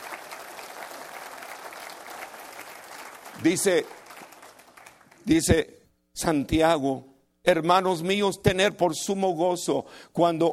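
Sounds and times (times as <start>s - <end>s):
audience applauding: 0.0s - 5.4s
speech: 3.4s - 4.0s, 5.2s - 10.5s.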